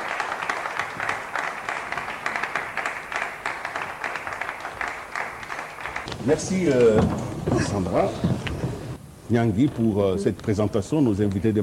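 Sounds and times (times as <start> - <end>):
audience applause welcoming the minister: 0.0 - 9.0
speech: 6.2 - 8.5, 9.3 - 11.6.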